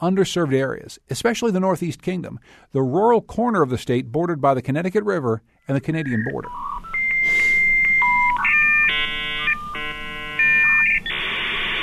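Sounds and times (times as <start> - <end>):
speech: 0.0 - 6.8
dial-up modem connection tones: 6.0 - 11.8.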